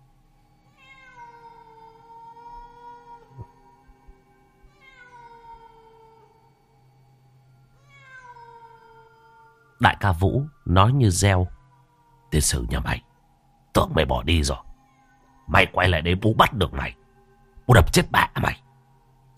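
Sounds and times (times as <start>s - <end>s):
cat yowling piteously: 0.7s - 3.7s, 4.6s - 6.4s, 7.8s - 9.8s, 11.1s - 13.2s
speech: 9.8s - 11.6s, 12.3s - 13.0s, 13.8s - 14.7s, 15.5s - 17.0s, 17.7s - 18.6s.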